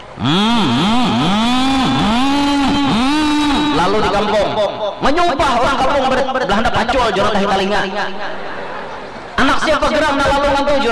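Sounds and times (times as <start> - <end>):
speech: 0.2 - 0.8, 3.9 - 8.5, 9.5 - 10.9
motorcycle with loud aftermarket exhaust: 0.2 - 4.2.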